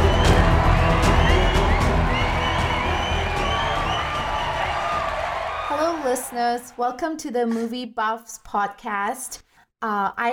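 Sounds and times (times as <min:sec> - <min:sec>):
crowd cheering and applauding to welcome podcast hosts onstage: 0:00.0 - 0:06.8
speech: 0:06.4 - 0:10.3.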